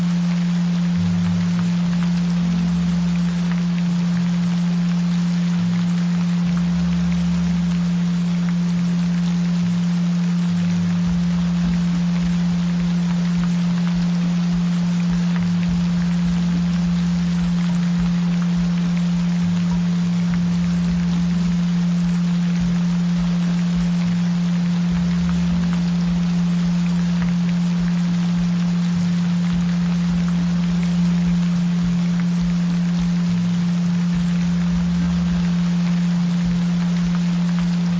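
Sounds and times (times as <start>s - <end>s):
gentle rain: 0.0s - 37.9s.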